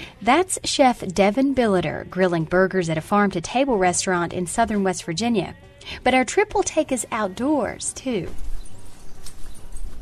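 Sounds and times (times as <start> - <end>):
speech: 0.2 - 8.5
outdoor rustle at a forest farm in Milton, West Virginia: 8.2 - 9.9.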